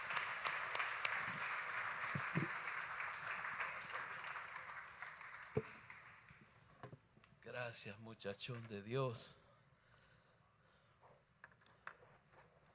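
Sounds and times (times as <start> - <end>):
crowd applause: 0.0 - 6.4
speech: 7.5 - 9.4.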